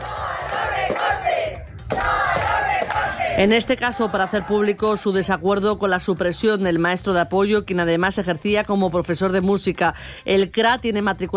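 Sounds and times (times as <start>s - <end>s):
protest crowd chanting outside the Carucedo rural grouped school: 0.0s - 5.1s
speech: 3.4s - 11.3s.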